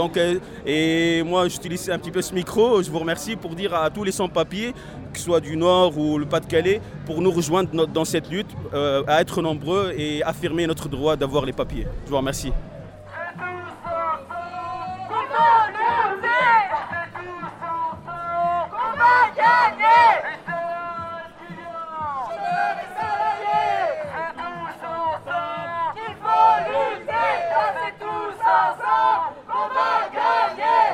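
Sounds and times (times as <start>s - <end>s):
speech: 0.0s - 12.7s
murmur of people: 0.0s - 30.9s
protest march crowd chanting: 14.0s - 16.9s, 18.3s - 20.5s, 22.1s - 30.9s.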